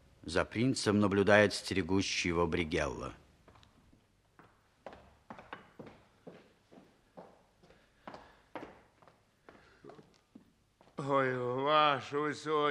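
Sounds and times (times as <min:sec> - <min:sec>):
speech: 0:00.2 - 0:03.2, 0:11.1 - 0:12.6
footsteps of a sleepless man pacing in a hall: 0:03.4 - 0:11.0.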